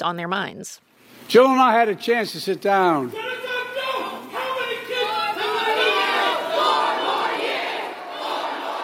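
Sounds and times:
speech: 0.0 - 3.4
large crowd chanting in unison: 3.3 - 8.8.

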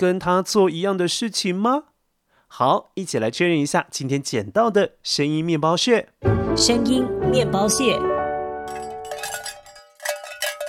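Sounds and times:
speech: 0.0 - 1.9, 2.5 - 8.1
cowbells clanking: 8.7 - 10.6.

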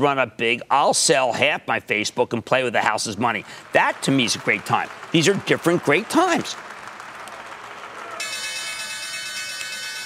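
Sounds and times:
speech: 0.0 - 6.7
stock exchange opening bell: 8.2 - 10.0.

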